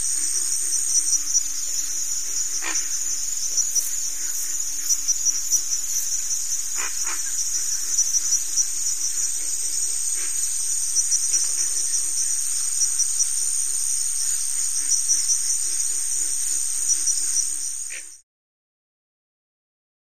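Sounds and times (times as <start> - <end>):
continuous cricket ratchet chirping: 0.0 - 18.2.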